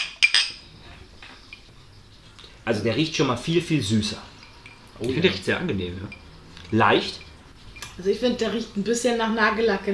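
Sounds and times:
glass clinking as it is picked up: 0.0 - 0.7, 4.3 - 8.0
speech: 2.6 - 4.3, 5.0 - 7.2, 8.0 - 9.9.

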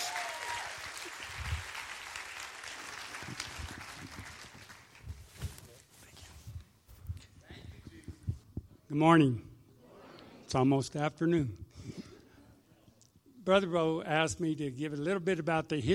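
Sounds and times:
church congregation applauding at Thrive Church in Federal Heights, Colorado: 0.0 - 5.3
speech: 9.0 - 9.5, 10.5 - 11.6, 13.5 - 15.9.

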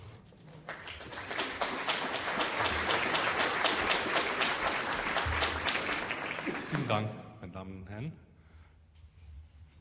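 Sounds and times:
audience applause: 0.5 - 7.1
speech: 6.9 - 8.3.

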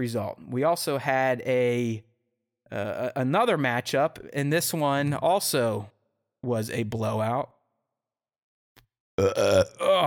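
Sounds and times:
speech: 0.0 - 2.1, 2.7 - 7.6, 9.2 - 10.0
person burping: 9.2 - 10.0.

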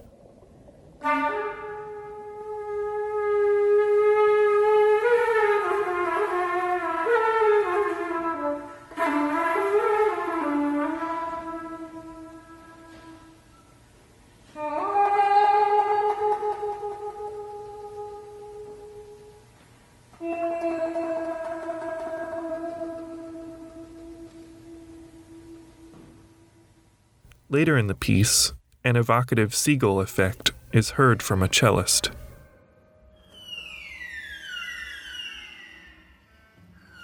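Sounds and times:
speech: 1.0 - 1.3, 27.6 - 32.2
flute played while humming into it, imitating humpback whale song: 1.0 - 13.8, 14.5 - 19.5, 20.2 - 26.7.

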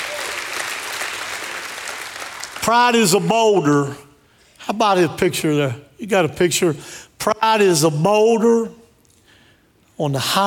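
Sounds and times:
congregation clapping in praise during a church service: 0.0 - 3.7
speech: 2.6 - 4.0, 4.7 - 8.8, 10.0 - 10.4.

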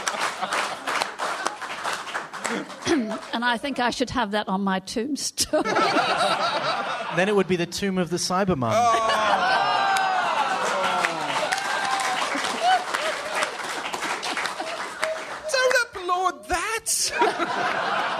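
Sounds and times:
audience clapping: 0.0 - 3.9, 9.6 - 16.8
audience laughing: 0.0 - 4.1, 5.6 - 7.6, 8.6 - 15.5, 17.0 - 18.1
speech: 2.5 - 9.2
excited voices: 8.7 - 13.6, 14.6 - 17.2.

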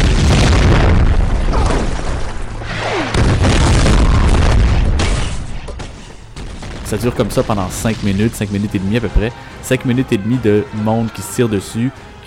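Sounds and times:
truck explosion: 0.0 - 8.8
speech: 6.9 - 12.2.

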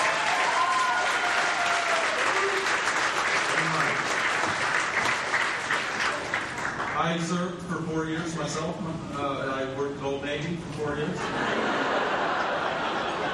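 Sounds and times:
crowd applauding: 0.0 - 7.0
speech: 7.1 - 12.0
laughter: 11.2 - 13.3.

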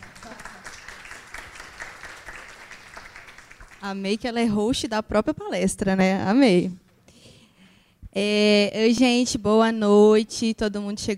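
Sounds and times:
crowd applauding: 0.0 - 3.9
speech: 3.8 - 6.8, 8.2 - 11.1.

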